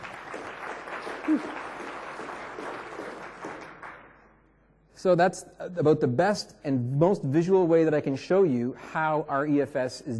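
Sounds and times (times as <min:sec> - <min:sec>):
golf clap from a small group: 0:00.0 - 0:04.4
speech: 0:01.3 - 0:01.6, 0:05.0 - 0:10.1.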